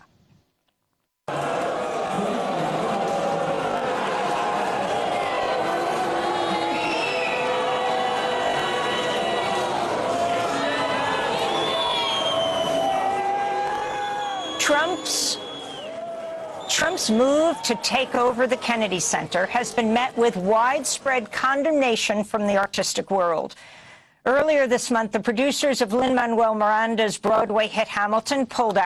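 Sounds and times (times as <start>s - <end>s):
concert audience booing at a symphony orchestra performance: 1.3s - 21.5s
speech: 14.8s - 15.4s, 17.0s - 28.8s.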